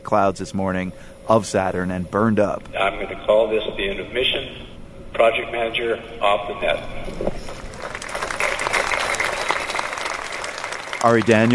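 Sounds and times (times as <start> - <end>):
speech: 0.1 - 7.6, 11.0 - 11.5
applause at mission control: 7.5 - 11.5.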